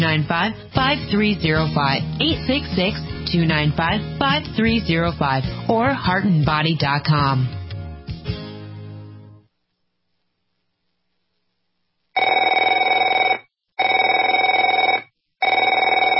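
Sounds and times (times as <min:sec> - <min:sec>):
speech: 0:00.0 - 0:07.6
telephone ringing: 0:12.2 - 0:16.1.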